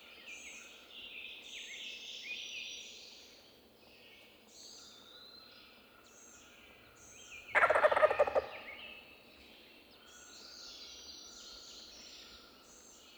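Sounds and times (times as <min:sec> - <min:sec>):
Wild Turkey Meleagris gallopavo calling: 0:07.6 - 0:08.8.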